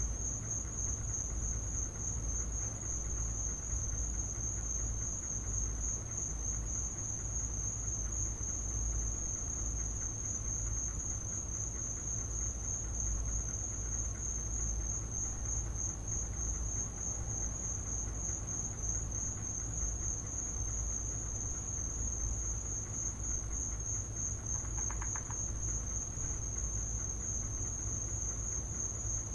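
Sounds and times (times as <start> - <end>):
crickets trilling: 0.0 - 29.3
rapid clicks: 24.5 - 25.5.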